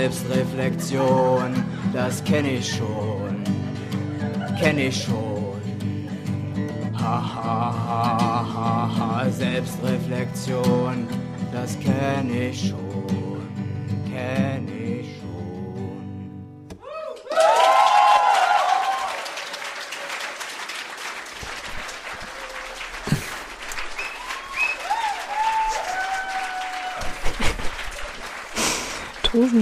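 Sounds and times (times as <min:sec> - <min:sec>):
speech: 0:00.0 - 0:03.6, 0:04.6 - 0:05.4, 0:07.0 - 0:13.4
laughter: 0:00.0 - 0:08.8, 0:21.6 - 0:24.6, 0:26.7 - 0:29.5
music: 0:00.0 - 0:16.7
crowd applause with cheering on live recording: 0:03.4 - 0:04.9, 0:16.8 - 0:29.5
whistles: 0:23.7 - 0:26.4.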